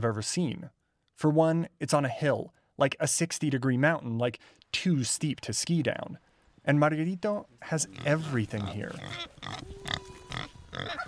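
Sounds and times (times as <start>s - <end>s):
speech: 0.0s - 11.0s
pig on a leash grunting: 7.8s - 11.0s.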